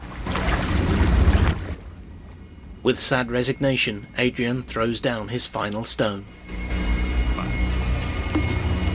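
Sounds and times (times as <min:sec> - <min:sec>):
water waves churning by a stone jetty: 0:00.0 - 0:02.4
wind: 0:00.0 - 0:08.9
speech: 0:02.8 - 0:06.6.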